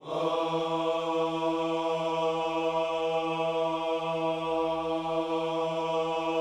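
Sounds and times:
gospel music: 0.0s - 6.4s.

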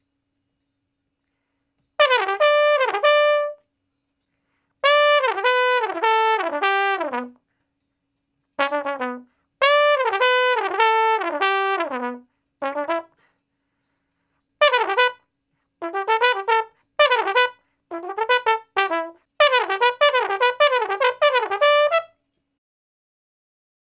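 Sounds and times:
straight-muted trombone in E for R&B solos: 2.0s - 3.6s, 4.8s - 7.4s, 8.6s - 13.2s, 14.6s - 15.2s, 15.8s - 22.1s.

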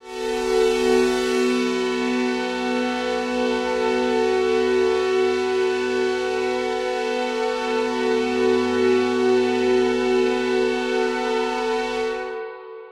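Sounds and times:
dystopian drone one-shot in B: 0.0s - 12.7s.

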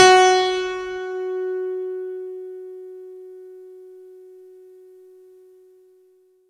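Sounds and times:
synth note: 0.0s - 1.5s.

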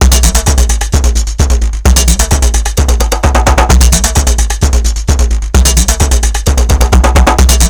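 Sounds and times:
funky techno music: 0.0s - 7.6s.

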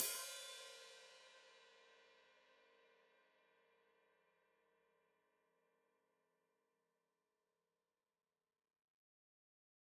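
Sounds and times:
open hi-hat played with foot: 0.0s - 0.7s.

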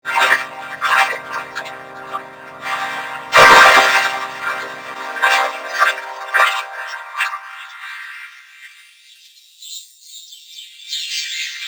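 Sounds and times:
vocoder voice: 0.1s - 7.5s.

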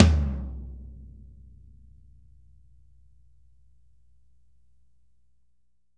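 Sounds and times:
drums: 0.0s - 1.1s.

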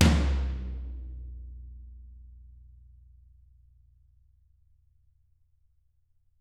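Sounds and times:
tom drums: 0.0s - 1.2s.

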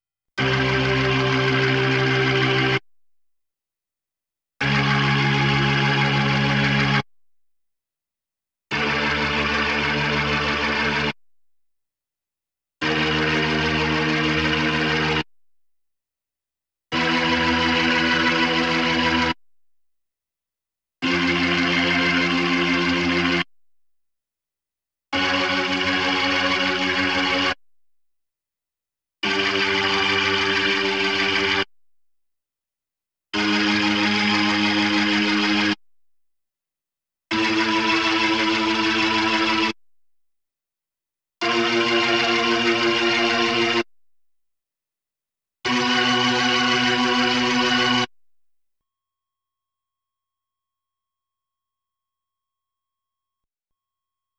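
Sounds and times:
Hammond B3 organ: 0.4s - 2.8s, 4.6s - 7.0s, 8.7s - 11.2s, 12.8s - 15.2s, 17.0s - 19.4s, 21.0s - 23.4s, 25.2s - 27.6s, 29.2s - 31.7s, 33.4s - 35.8s, 37.3s - 39.8s, 41.4s - 43.8s, 45.7s - 48.1s.

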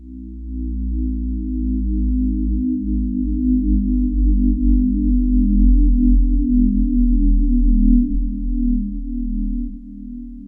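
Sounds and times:
low drone: 0.0s - 10.4s.

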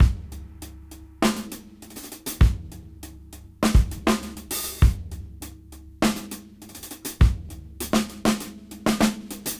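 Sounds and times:
half funk music at 101 BPM: 0.0s - 8.6s.

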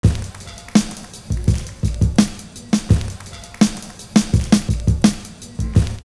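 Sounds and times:
hand clap: 0.0s - 6.0s
drums: 0.0s - 6.1s.

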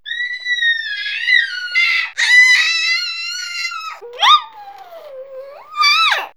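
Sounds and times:
excited baby comedy vocals: 0.0s - 6.3s.

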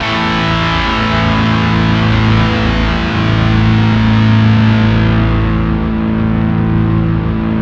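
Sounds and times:
bizarre guitar: 0.0s - 7.6s.

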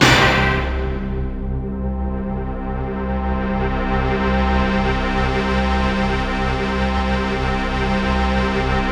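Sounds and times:
orchestra: 0.0s - 8.9s.

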